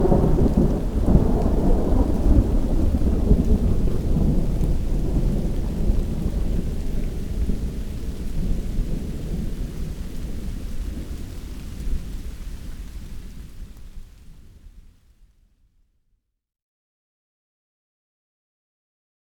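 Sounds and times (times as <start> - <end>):
thunder: 0.0 - 12.4
rain: 0.0 - 15.4.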